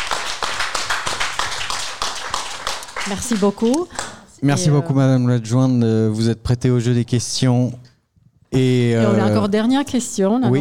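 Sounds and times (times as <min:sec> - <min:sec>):
audience applause at a public gathering: 0:00.0 - 0:04.4
speech: 0:03.1 - 0:07.9, 0:08.5 - 0:10.6.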